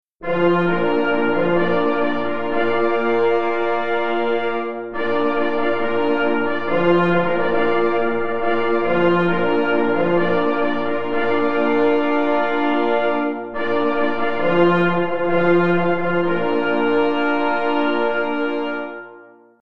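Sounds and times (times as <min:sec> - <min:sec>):
four pless horns and two parforce horns playing a hunting call: 0:00.2 - 0:19.5.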